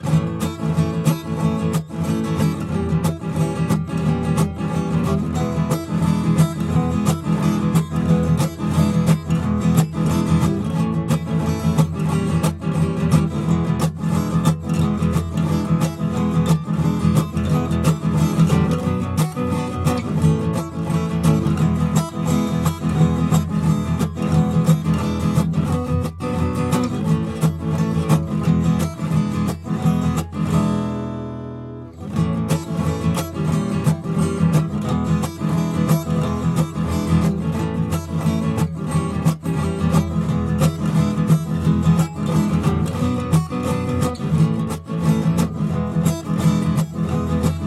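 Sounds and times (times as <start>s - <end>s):
guitar music: 0.0s - 47.6s.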